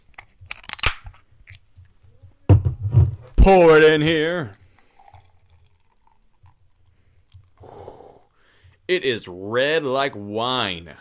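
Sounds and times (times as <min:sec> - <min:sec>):
small clicks and crinkly handling noises: 0:00.0 - 0:02.0
speech: 0:03.4 - 0:04.6, 0:08.9 - 0:10.9.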